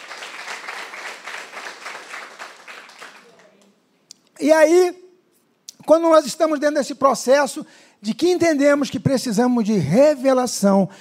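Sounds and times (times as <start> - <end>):
audience applause: 0.0 - 3.5
speech: 4.4 - 5.0, 5.9 - 10.9.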